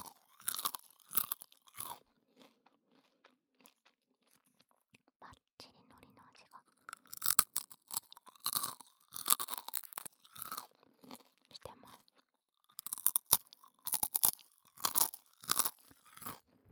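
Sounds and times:
various rice cracker ASMR sounds: 0.0 - 3.9, 6.9 - 11.2, 12.7 - 16.4.

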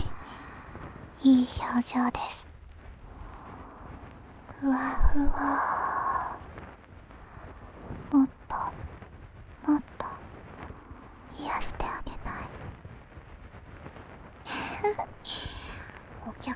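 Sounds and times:
person whispering in both ears: 0.0 - 0.5, 1.2 - 2.5, 4.5 - 6.4, 8.0 - 8.8, 9.6 - 12.5.

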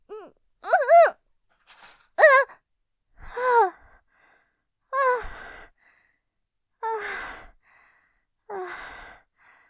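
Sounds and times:
woman moaning: 0.1 - 1.2, 2.2 - 2.4.

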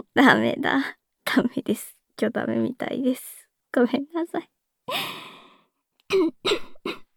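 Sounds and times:
speech: 0.2 - 5.2
person coughing after food or drink went down the wrong pipe: 6.1 - 7.1.

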